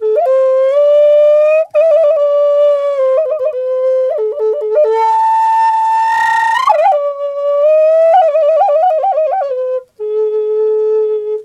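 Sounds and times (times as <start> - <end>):
wild flute: 0.0 - 11.4.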